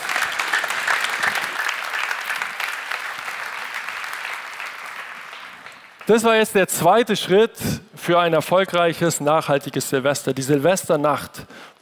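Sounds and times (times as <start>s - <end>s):
audience applause: 0.0s - 6.5s
speech: 6.1s - 11.8s.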